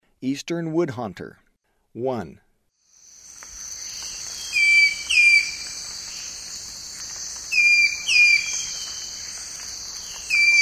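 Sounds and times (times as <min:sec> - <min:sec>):
Eastern woodhaunter calling in paired whistled notes in the eastern lowlands of South America: 0:03.8 - 0:06.3, 0:07.5 - 0:10.6.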